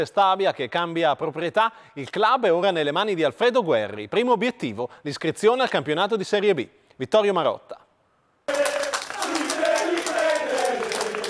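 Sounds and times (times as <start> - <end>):
speech: 0.0 - 7.8
crowd applause: 8.5 - 11.2
voices and cheering: 8.5 - 11.2.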